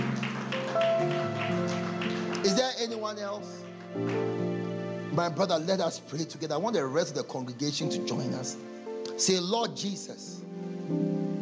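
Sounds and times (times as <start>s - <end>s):
rhythmic group clapping: 0.0s - 5.0s
speech: 2.4s - 4.4s, 5.2s - 11.1s.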